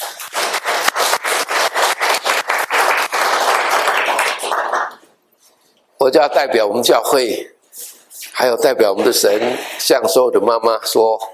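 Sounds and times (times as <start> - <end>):
audience clapping for mothers: 0.0 - 5.1
speech: 6.0 - 11.3.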